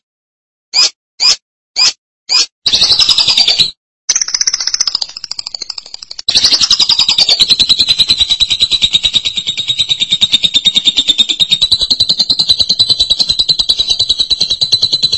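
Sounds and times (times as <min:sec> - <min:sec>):
lovebird trilling: 0:00.7 - 0:15.1.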